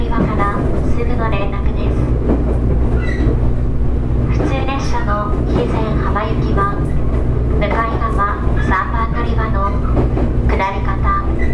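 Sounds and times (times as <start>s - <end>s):
JR Kyushu 811 series local train rumble on the Kagoshima line: 0.0s - 11.5s
passengers talking: 0.0s - 11.5s.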